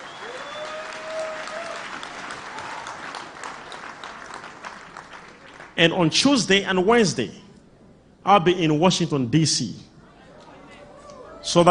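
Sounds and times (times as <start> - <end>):
audience clapping hands: 0.0 - 5.8
speech: 5.8 - 7.4, 8.3 - 9.9.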